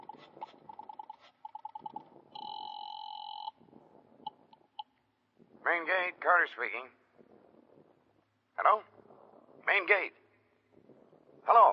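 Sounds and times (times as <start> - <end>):
steady phone tone: 0.0 - 3.6
telephone ringing through the line: 0.0 - 3.6
short beeps: 0.8 - 3.6
speech: 5.7 - 7.0, 9.7 - 10.2.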